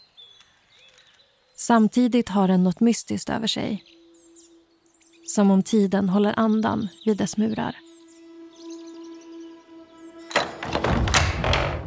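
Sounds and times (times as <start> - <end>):
speech: 1.6 - 4.0, 5.3 - 7.9
soft sustained tone: 3.1 - 10.8
heavy gate of an old Gothic stone building opening, thunk and scraping: 10.2 - 11.8.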